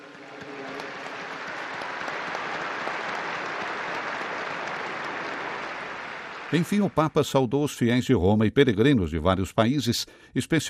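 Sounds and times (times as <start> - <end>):
audience applause: 0.0 - 7.4
speech: 6.5 - 10.6.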